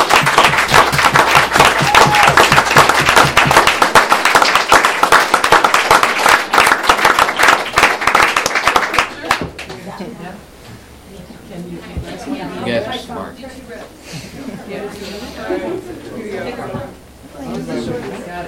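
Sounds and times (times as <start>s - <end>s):
audience applause: 0.0s - 9.7s.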